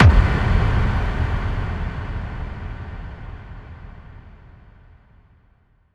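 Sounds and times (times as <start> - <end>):
bass drum FX kicks: 0.0 - 3.8.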